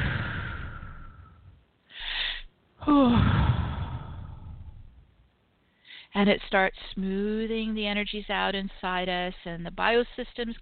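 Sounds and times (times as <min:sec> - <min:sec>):
deep breathing during a guided meditation: 0:00.0 - 0:05.0
speech: 0:06.2 - 0:10.5.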